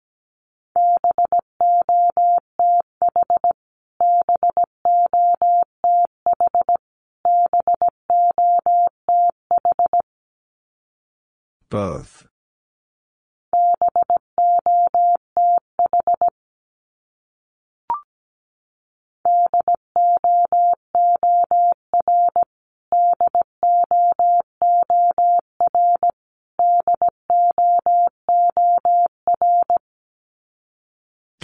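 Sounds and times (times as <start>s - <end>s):
Morse code beeps at 17 words per minute: 0.8s - 10.0s, 13.6s - 16.3s, 19.3s - 29.8s
speech: 11.7s - 12.3s.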